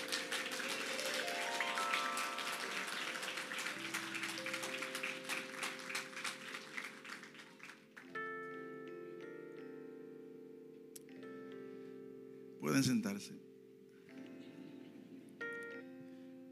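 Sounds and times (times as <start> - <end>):
audience applause: 0.0 - 8.2
sustained organ or keyboard chords: 0.0 - 16.4
speech: 12.6 - 13.5.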